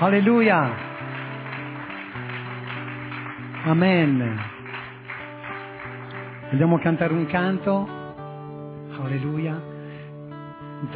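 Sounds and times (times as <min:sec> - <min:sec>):
speech: 0:00.0 - 0:00.8, 0:03.6 - 0:04.5, 0:06.5 - 0:08.0, 0:09.0 - 0:09.7
audience applause: 0:00.0 - 0:07.7.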